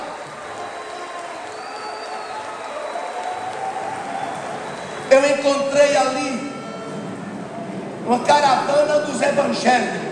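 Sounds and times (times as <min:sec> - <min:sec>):
crowd round of applause: 0:00.0 - 0:08.0
speech: 0:05.1 - 0:06.4, 0:08.1 - 0:10.0.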